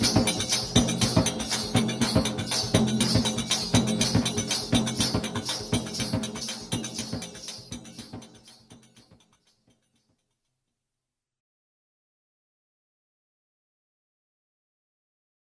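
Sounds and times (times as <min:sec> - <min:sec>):
frame drum: 0:00.0 - 0:08.9.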